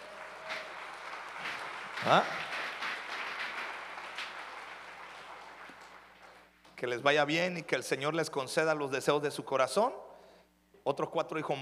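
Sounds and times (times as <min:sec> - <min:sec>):
crowd applauding: 0:00.0 - 0:06.5
speech: 0:02.0 - 0:02.4, 0:06.8 - 0:10.1, 0:10.8 - 0:11.5.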